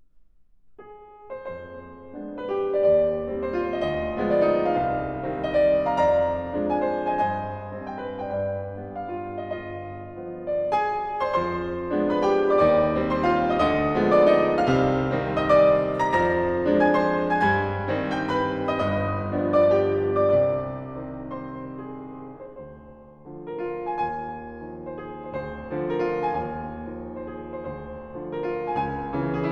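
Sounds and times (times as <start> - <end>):
piano piece: 0.0 - 29.5.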